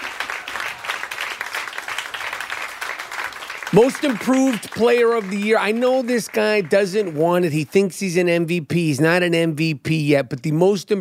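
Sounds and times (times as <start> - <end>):
crowd applause: 0.0 - 7.5
speech: 3.7 - 10.9.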